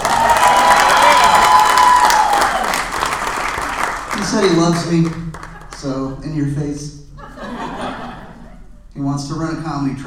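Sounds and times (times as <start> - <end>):
cheers and whoops: 0.0 - 3.0
crowd applauding for comedian: 0.0 - 6.1
speech: 4.4 - 7.0, 9.0 - 10.0
laughter: 7.2 - 8.9.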